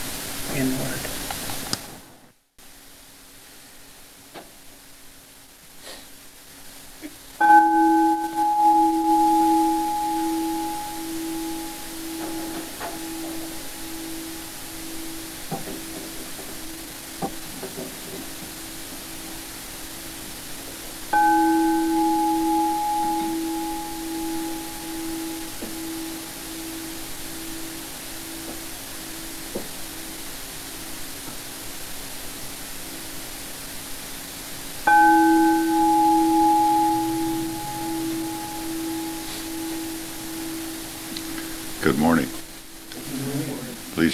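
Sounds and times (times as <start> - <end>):
steady hiss: 0.0 - 44.1
speech: 0.6 - 1.1
bell sounding: 7.4 - 16.9, 21.1 - 30.2, 34.9 - 42.9.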